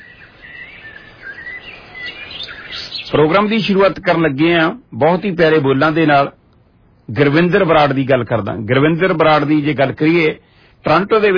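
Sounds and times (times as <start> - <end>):
birds chirping outside a video production studio: 0.0 - 4.5
soft steady hiss: 0.0 - 11.3
speech: 3.1 - 6.4, 7.1 - 11.3.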